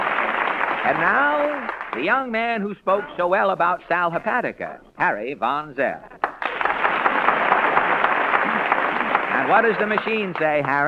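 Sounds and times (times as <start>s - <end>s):
studio audience applause: 0.0s - 2.3s, 6.2s - 10.8s
speech: 0.8s - 6.2s, 9.5s - 10.8s.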